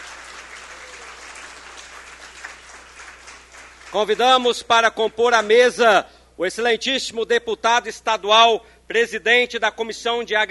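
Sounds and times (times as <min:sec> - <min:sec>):
audience applause: 0:00.0 - 0:04.2
speech: 0:03.9 - 0:10.4.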